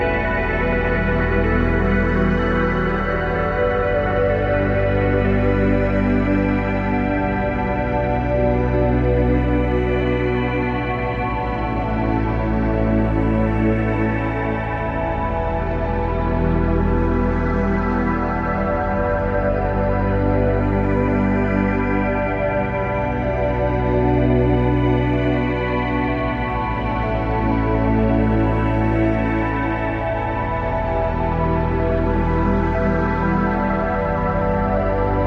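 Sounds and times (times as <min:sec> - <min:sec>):
futuristic background soundscape music: 0:00.0 - 0:35.2.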